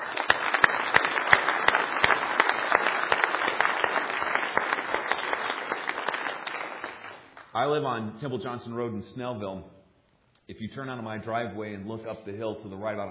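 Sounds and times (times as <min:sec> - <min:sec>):
audience applause: 0:00.0 - 0:07.4
speech: 0:07.6 - 0:09.8, 0:10.5 - 0:13.0.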